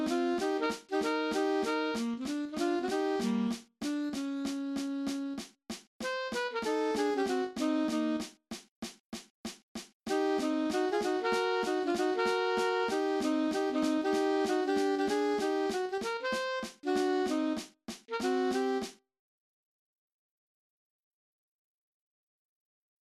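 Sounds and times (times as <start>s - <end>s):
alto saxophone playing in cut time: 0.0s - 5.4s, 6.0s - 8.3s, 10.1s - 18.9s.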